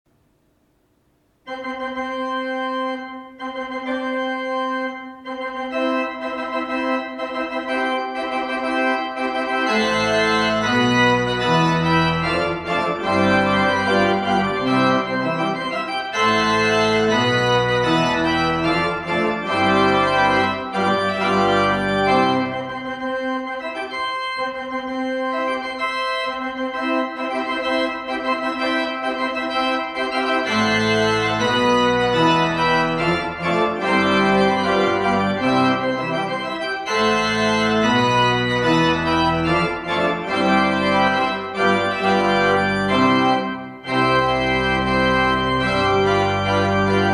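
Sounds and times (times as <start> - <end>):
wedding march music: 1.4 - 47.1.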